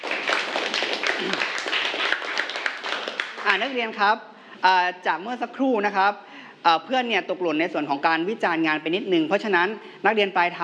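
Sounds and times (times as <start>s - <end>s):
classroom applause for a classmate: 0.0s - 3.8s
speech: 3.6s - 10.6s.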